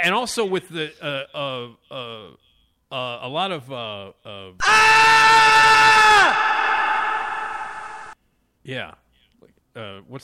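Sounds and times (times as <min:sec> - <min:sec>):
speech: 0:00.0 - 0:06.6, 0:08.6 - 0:09.0, 0:09.8 - 0:10.2
scream sound effect with heavy echo: 0:04.6 - 0:08.2.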